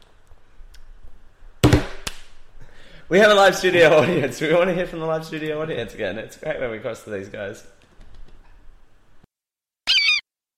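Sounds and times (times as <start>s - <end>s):
speech: 3.1s - 7.8s
bird calling in the studio: 9.9s - 10.2s.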